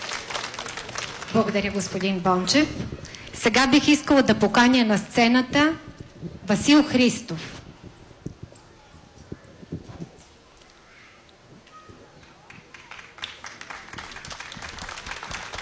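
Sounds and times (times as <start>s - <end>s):
audience applause for a young boy at a ceremony: 0.0s - 2.5s, 12.2s - 15.6s
speech: 1.3s - 7.6s.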